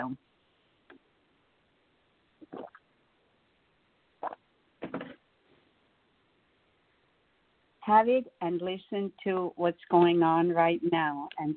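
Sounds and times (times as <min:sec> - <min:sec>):
speech: 0:00.0 - 0:00.3, 0:07.9 - 0:11.5
person sipping water: 0:02.4 - 0:02.8.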